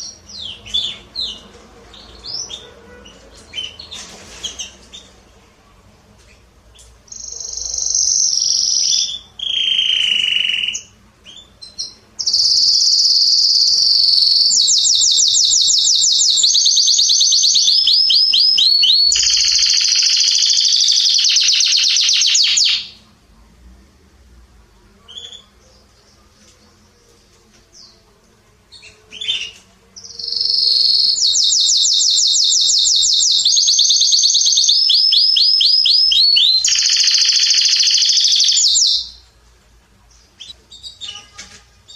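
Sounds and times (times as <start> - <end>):
canary song: 0.0 - 23.2, 24.6 - 41.9.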